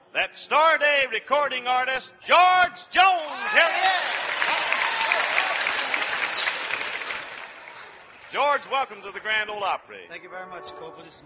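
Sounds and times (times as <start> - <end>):
speech: 0.2 - 4.6, 8.3 - 11.2
studio audience applause welcoming a country singer: 3.4 - 9.6.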